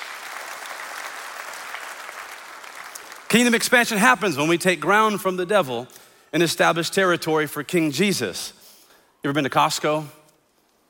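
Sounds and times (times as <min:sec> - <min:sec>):
audience clapping hands: 0:00.0 - 0:04.0
speech: 0:03.3 - 0:08.6, 0:09.2 - 0:10.2.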